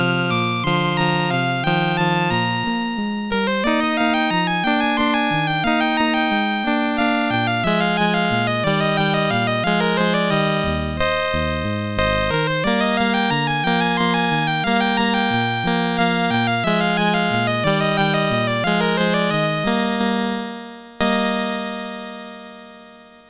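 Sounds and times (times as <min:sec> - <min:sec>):
waltz on MOS6581R4 sound chip: 0:00.0 - 0:22.6.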